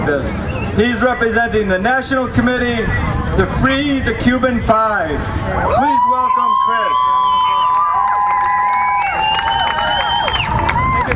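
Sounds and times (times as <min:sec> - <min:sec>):
speech: 0:00.1 - 0:06.1
audience applauding: 0:06.7 - 0:11.1.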